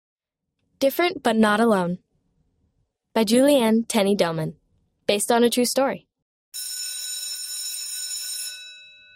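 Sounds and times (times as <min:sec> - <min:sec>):
speech: 0:00.8 - 0:02.0, 0:03.2 - 0:06.7
electric school bell ringing: 0:06.6 - 0:09.1.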